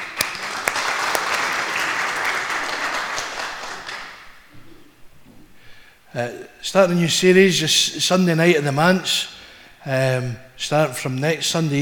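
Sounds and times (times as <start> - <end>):
audience clapping: 0.0 - 4.4
speech: 6.2 - 11.8.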